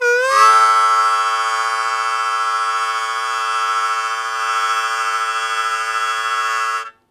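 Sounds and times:
harmonica blues chord attack in A1: 0:00.0 - 0:07.0.

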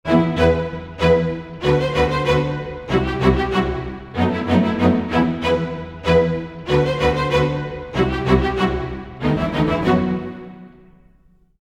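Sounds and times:
orchestral strings in E minor at 95 bpm: 0:00.1 - 0:11.4.

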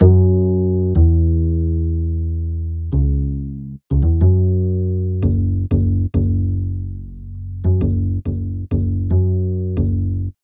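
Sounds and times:
upright bass cinematic funk: 0:00.0 - 0:10.4.

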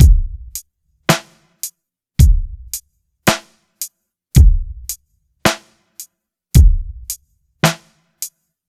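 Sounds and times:
ballad drum beat: 0:00.0 - 0:01.4, 0:02.2 - 0:03.4, 0:04.4 - 0:05.7, 0:06.6 - 0:07.9.

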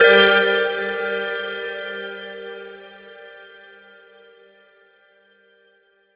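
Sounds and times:
dragon bell: 0:00.0 - 0:05.6.

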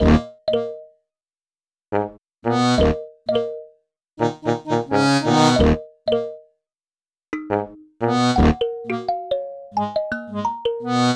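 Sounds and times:
accordion in cinematic funk: 0:00.0 - 0:00.8, 0:02.5 - 0:03.6, 0:04.2 - 0:06.4, 0:07.4 - 0:11.1
kalimba in cinematic funk: 0:07.4 - 0:11.1.

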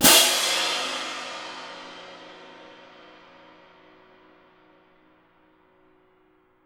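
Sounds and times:
cymbal: 0:00.0 - 0:05.0.

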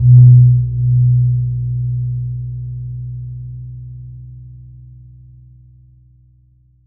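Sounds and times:
gong strike: 0:00.0 - 0:03.4.

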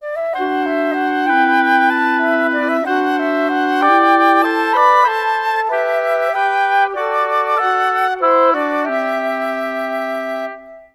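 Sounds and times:
woodwinds in G major at 95 bpm: 0:00.0 - 0:10.9.

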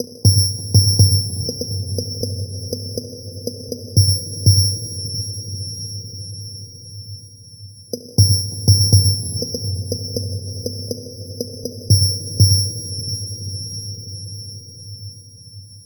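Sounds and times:
dark beat with organic processing: 0:00.0 - 0:05.0, 0:08.0 - 0:13.2.

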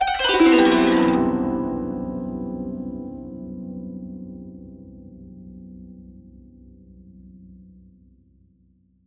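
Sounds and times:
zheng harp playing: 0:00.0 - 0:04.2.

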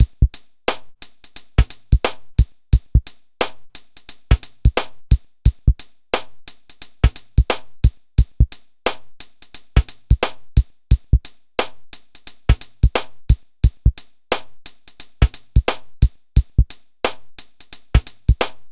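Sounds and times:
hip hop drums: 0:00.0 - 0:18.7.

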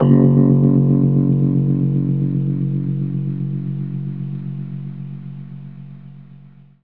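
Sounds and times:
Rhodes electric piano in F sharp: 0:00.0 - 0:06.0.

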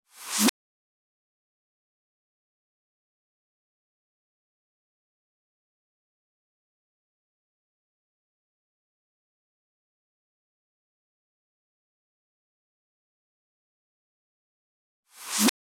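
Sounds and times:
reverse snare effect: 0:00.2 - 0:00.5, 0:15.2 - 0:15.5.

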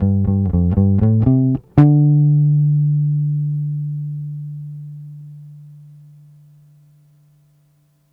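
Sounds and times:
70s analog funk bass ending: 0:00.0 - 0:05.5.

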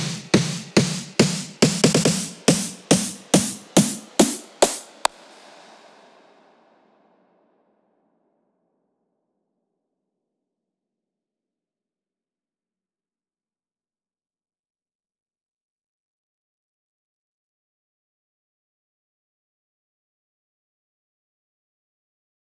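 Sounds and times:
breakbeat drums with snare: 0:00.0 - 0:05.2.

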